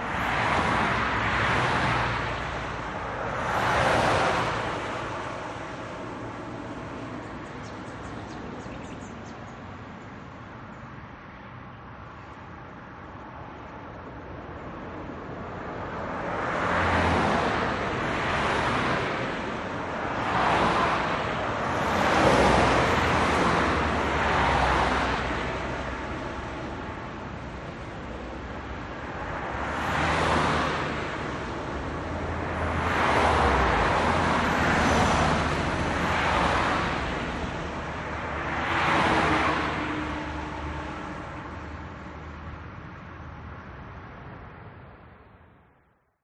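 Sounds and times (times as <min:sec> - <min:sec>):
road traffic vehicles passing fast at midday: 0:00.0 - 0:45.8
birds: 0:07.0 - 0:10.9.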